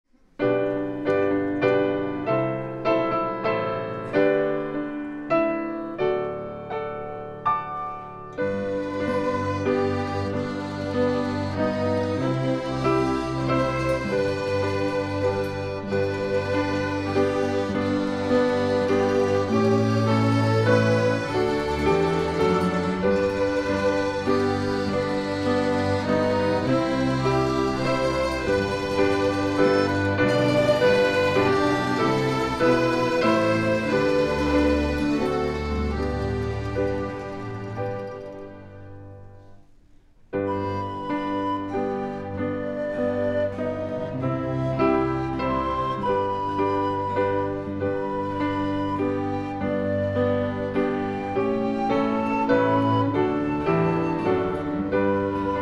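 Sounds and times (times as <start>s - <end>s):
prelude music: 0.1s - 55.6s.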